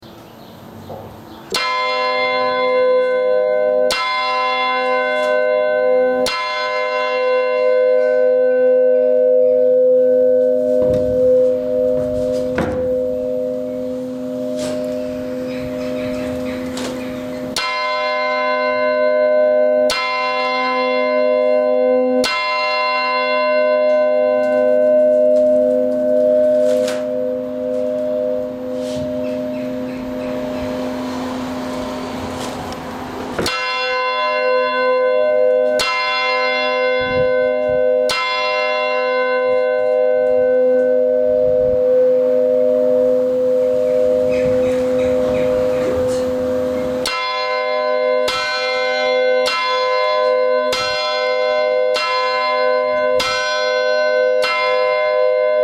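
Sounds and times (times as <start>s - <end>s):
small Angelus bell of Lambertuskerk in Bingelrade: 1.5s - 55.6s.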